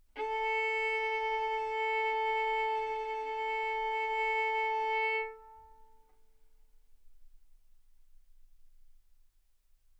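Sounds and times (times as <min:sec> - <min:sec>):
violin arco on A string: 0:00.0 - 0:06.1.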